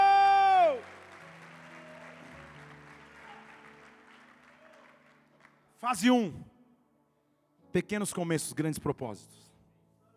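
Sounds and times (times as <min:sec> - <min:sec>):
audience applauding: 0:00.0 - 0:05.7
speech: 0:05.8 - 0:06.5, 0:07.7 - 0:09.5.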